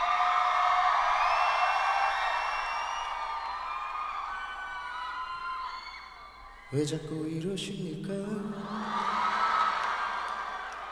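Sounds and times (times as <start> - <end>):
applause: 0.0 - 5.6, 9.0 - 10.8
speech: 6.7 - 9.0.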